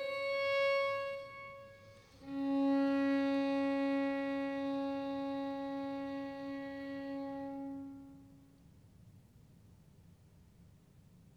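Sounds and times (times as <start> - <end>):
solo violin piece in D minor: 0.0 - 8.3.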